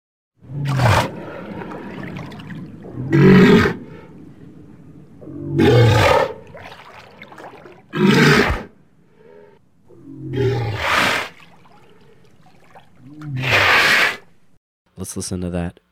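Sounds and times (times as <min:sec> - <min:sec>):
low rumbling: 0:00.4 - 0:13.5
walrus roaring bellows: 0:00.4 - 0:14.4
faint watery trickle: 0:01.1 - 0:08.0, 0:11.0 - 0:13.4
speech: 0:15.1 - 0:15.8.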